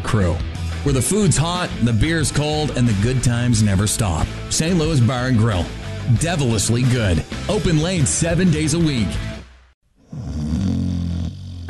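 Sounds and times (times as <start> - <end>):
speech: 0.1 - 9.3
person snoring: 10.0 - 11.6.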